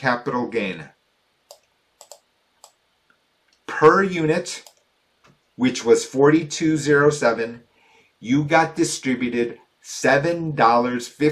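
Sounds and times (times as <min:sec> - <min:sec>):
speech: 0:00.0 - 0:01.0, 0:03.7 - 0:04.7, 0:05.6 - 0:11.3
computer mouse clicks: 0:01.5 - 0:03.6, 0:04.6 - 0:05.4.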